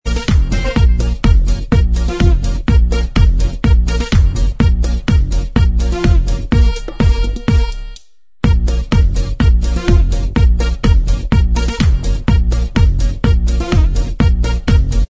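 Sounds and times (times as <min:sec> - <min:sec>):
instrumental music: 0:00.1 - 0:15.0.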